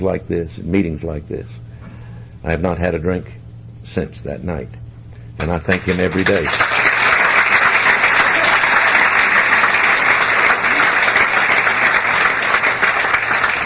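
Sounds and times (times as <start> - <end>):
speech: 0.0 - 1.7, 2.4 - 4.8, 5.4 - 6.8
audience applause: 5.7 - 13.6.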